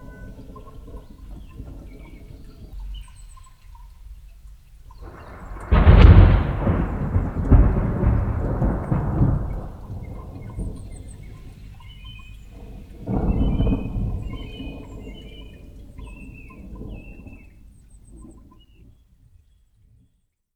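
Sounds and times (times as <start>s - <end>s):
thunder: 5.0s - 17.6s.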